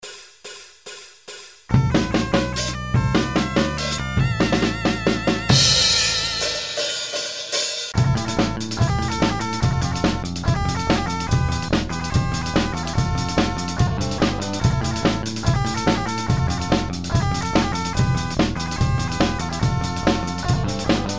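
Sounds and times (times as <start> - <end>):
drum scratch: 0.0 - 21.1.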